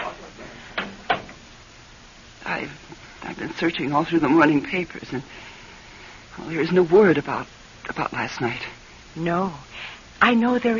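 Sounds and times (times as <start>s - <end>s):
office door being closed: 0.0s - 1.4s
speech: 2.5s - 5.5s, 6.4s - 10.7s.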